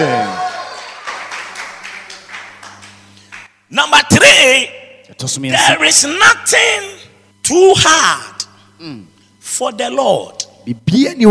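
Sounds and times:
audience shouting: 0.0 - 1.1
audience clapping: 0.0 - 3.6
speech: 3.8 - 11.2.

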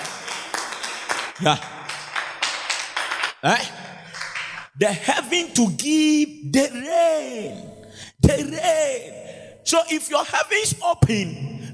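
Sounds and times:
Christians clapping: 0.0 - 5.1
speech: 1.4 - 1.8, 3.4 - 3.8, 4.8 - 7.7, 8.3 - 11.5.

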